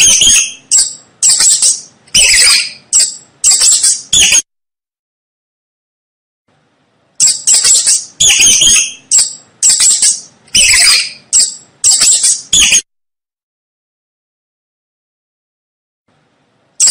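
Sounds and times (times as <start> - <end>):
mouse squeaking: 0.0 - 4.4, 7.2 - 12.8.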